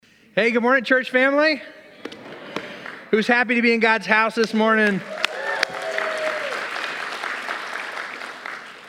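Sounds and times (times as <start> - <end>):
speech: 0.4 - 1.8, 3.1 - 5.2
audience applause: 4.9 - 8.8.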